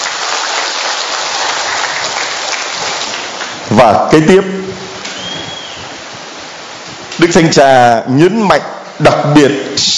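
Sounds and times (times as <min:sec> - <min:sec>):
audience applause: 0:00.0 - 0:03.6
speech: 0:03.7 - 0:04.6, 0:07.2 - 0:09.9.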